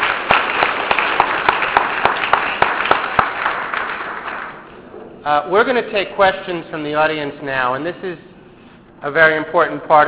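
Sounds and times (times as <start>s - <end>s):
audience applauding: 0.0s - 4.7s
speech: 5.2s - 8.3s, 9.0s - 10.0s.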